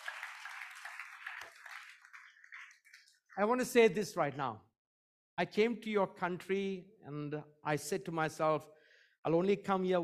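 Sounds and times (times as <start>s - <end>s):
audience applause: 0.0s - 3.6s
speech: 3.4s - 4.7s, 5.4s - 10.0s.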